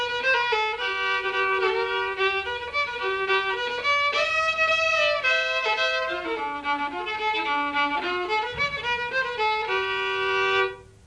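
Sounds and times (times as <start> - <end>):
cornstalk fiddle played with a shoestring bow: 0.0 - 10.9.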